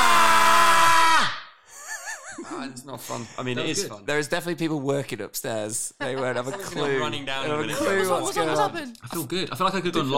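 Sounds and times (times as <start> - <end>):
group of people screaming together: 0.0 - 1.4
speech: 2.6 - 10.1.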